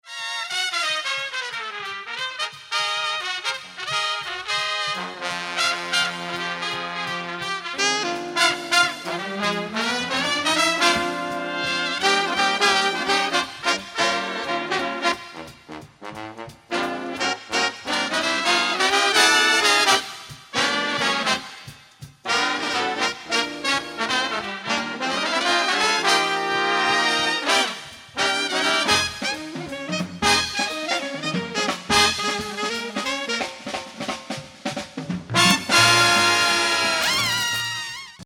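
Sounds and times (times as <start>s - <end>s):
big band: 0.0s - 38.2s.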